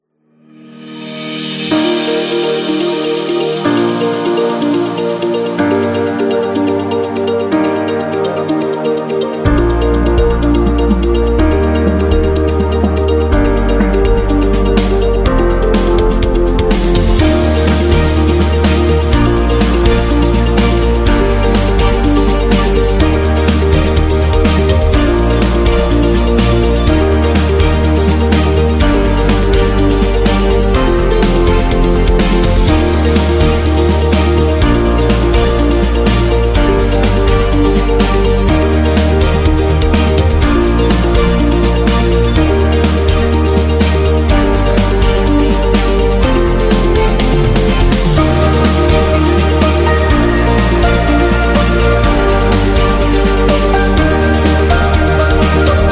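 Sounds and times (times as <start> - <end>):
dynamic corporate music: 1.0 - 55.8.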